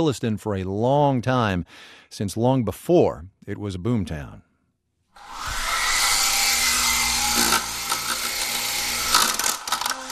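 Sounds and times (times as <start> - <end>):
speech: 0.0 - 4.5
small remote-controlled helicopter motor whirring: 5.2 - 10.0.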